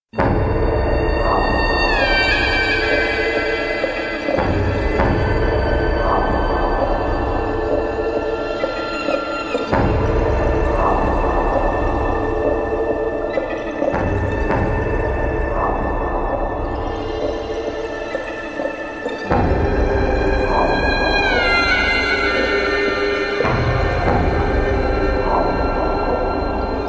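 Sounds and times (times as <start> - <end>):
background music: 0.1 - 26.8.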